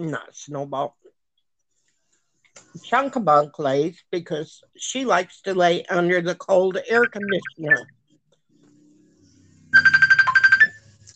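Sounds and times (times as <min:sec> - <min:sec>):
speech: 0:00.0 - 0:01.0, 0:02.6 - 0:08.0
mobile phone ringtone: 0:09.7 - 0:10.9.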